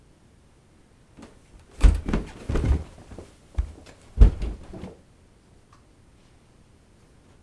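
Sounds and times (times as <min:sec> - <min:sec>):
person running downstairs: 0:01.7 - 0:05.0.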